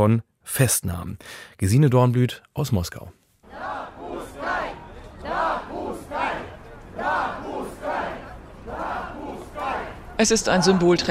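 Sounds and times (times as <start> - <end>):
speech: 0.0 - 3.7, 10.2 - 11.0
protest crowd chanting in front of Moscow city hall: 3.4 - 11.0.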